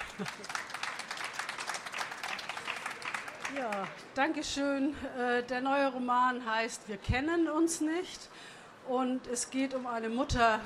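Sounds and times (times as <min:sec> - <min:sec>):
audience applause: 0:00.0 - 0:04.1
speech: 0:00.2 - 0:00.7, 0:03.5 - 0:10.6.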